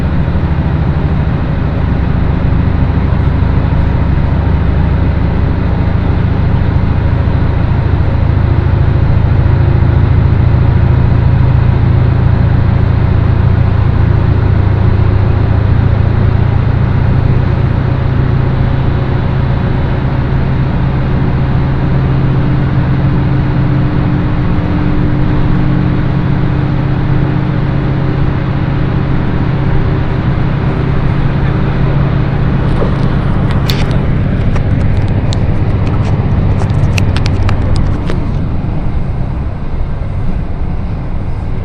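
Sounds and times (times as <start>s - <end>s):
faint hum: 0.0s - 41.6s
single-car diesel train running on the Echigo Tokimeki Railway: 0.0s - 41.6s
sharp bright clicks and rattles: 32.7s - 38.4s.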